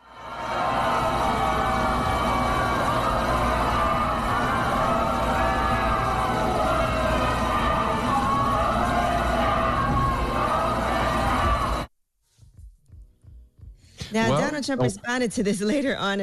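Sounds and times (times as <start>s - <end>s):
crowd booing on the Supreme Court steps: 0.0s - 11.9s
speech: 14.6s - 16.2s.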